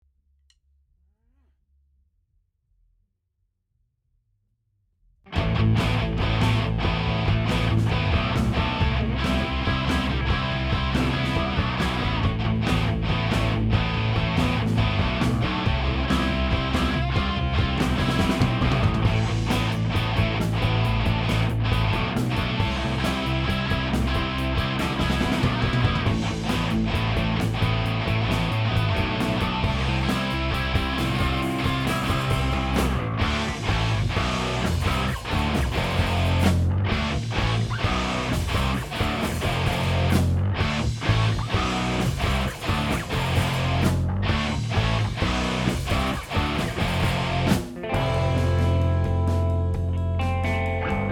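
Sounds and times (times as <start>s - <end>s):
guitars: 5.3s - 51.0s.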